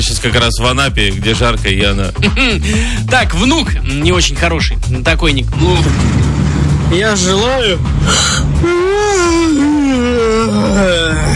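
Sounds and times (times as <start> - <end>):
speech: 0.0 - 6.3, 6.9 - 9.3
person yawning: 8.0 - 11.3.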